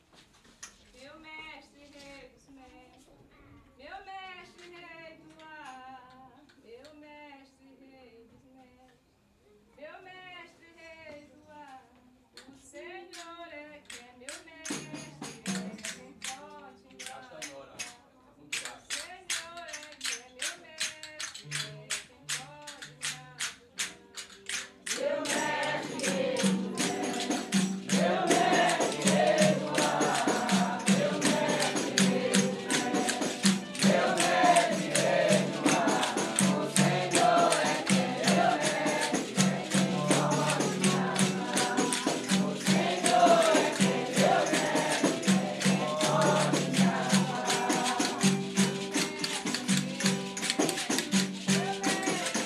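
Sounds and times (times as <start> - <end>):
baiao music: 21.2 - 52.4.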